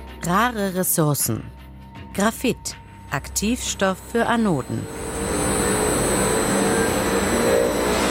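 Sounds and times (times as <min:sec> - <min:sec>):
speech: 0:00.3 - 0:01.6, 0:02.2 - 0:05.2
recycling plant machinery starting up in a large hall in Braunschweig: 0:03.6 - 0:08.0.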